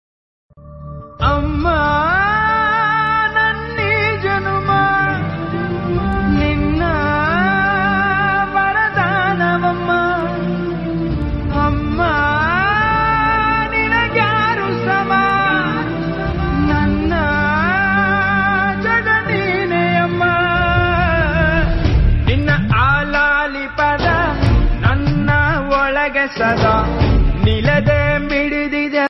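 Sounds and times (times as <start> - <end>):
Tamil song: 0.5 - 29.0.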